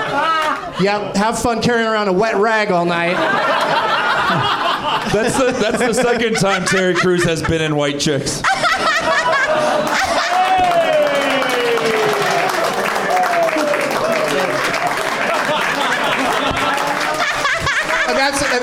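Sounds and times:
audience clapping: 0:00.0 - 0:00.8, 0:09.3 - 0:18.6
crowd laughter: 0:00.0 - 0:01.2, 0:03.0 - 0:18.6
speech: 0:00.2 - 0:08.7
whoops: 0:09.8 - 0:14.2.

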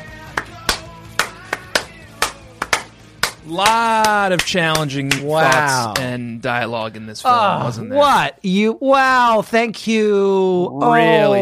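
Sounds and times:
slow clap: 0:00.2 - 0:06.1
speech: 0:03.5 - 0:11.4.

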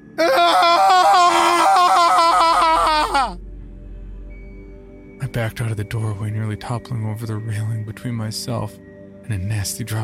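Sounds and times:
demented agonized scream: 0:00.2 - 0:03.4
speech: 0:05.3 - 0:10.0.

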